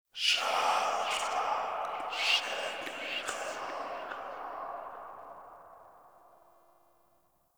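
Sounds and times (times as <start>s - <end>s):
whisper in a room: 0.2s - 6.5s.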